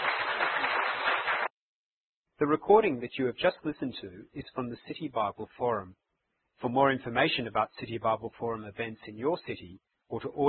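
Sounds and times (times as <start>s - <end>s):
audience applause: 0.0s - 1.5s
speech: 2.4s - 6.0s, 6.6s - 10.4s.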